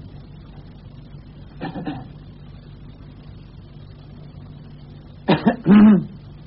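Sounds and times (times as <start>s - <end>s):
man coughing: 1.6s - 2.1s, 5.3s - 6.2s.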